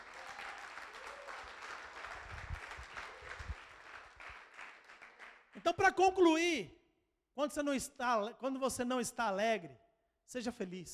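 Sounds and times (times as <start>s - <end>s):
crowd applause: 0.0s - 5.4s
speech: 5.6s - 6.8s, 7.4s - 10.9s.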